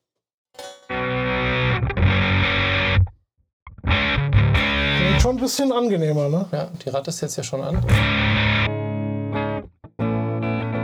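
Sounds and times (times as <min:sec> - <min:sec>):
electric guitar chords through clean amp simulation: 0:00.6 - 0:03.1, 0:03.7 - 0:05.4, 0:07.8 - 0:10.8
speech: 0:05.3 - 0:08.4.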